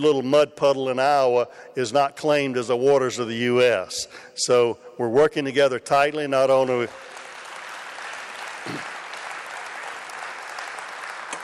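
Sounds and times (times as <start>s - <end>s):
speech: 0.0s - 7.1s, 8.6s - 8.9s
audience applause: 6.6s - 11.4s.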